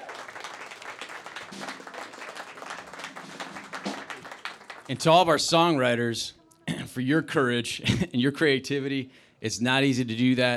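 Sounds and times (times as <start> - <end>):
audience applause for Project Drew team: 0.0 - 5.4
speech: 4.9 - 6.4, 7.0 - 10.5.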